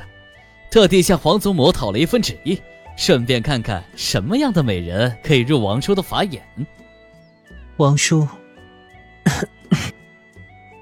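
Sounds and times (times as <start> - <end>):
speech: 0.7 - 6.8, 7.8 - 8.4, 9.2 - 10.0
low coughing: 9.2 - 10.1.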